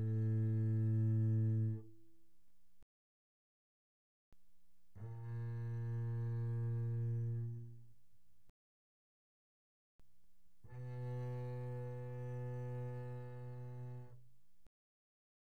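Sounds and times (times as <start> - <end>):
double bass bowed pianissimo on the D string: 0.0 - 2.0, 5.0 - 8.0, 10.6 - 14.3.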